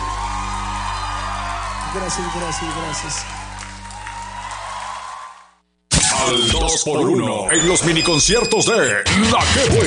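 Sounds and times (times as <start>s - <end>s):
audience applause at a concert: 0.0s - 5.6s
speech: 1.9s - 3.4s, 6.3s - 9.8s.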